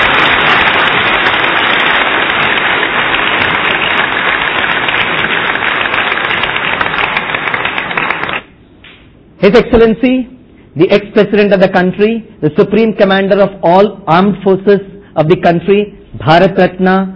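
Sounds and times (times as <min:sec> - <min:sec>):
large audience applause: 0:00.0 - 0:08.5
speech: 0:09.5 - 0:17.1.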